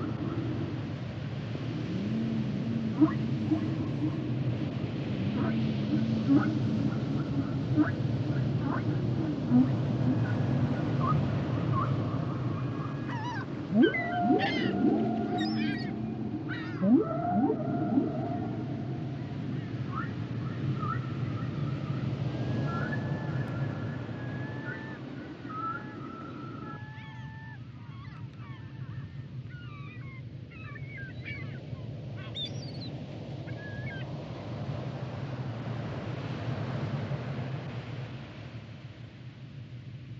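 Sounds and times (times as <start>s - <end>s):
whale songs: 0.0s - 31.6s
dolphins: 0.0s - 37.8s.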